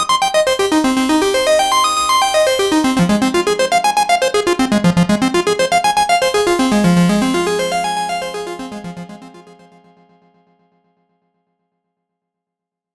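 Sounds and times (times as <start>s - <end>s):
synthesizer cascade in 8 steps with filter cutoff in C: 0.0s - 9.6s.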